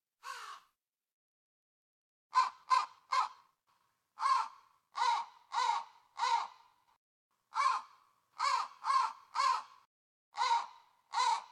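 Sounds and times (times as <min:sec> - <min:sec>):
raven: 0:00.2 - 0:00.7, 0:02.3 - 0:03.5, 0:04.2 - 0:06.9, 0:07.5 - 0:11.5.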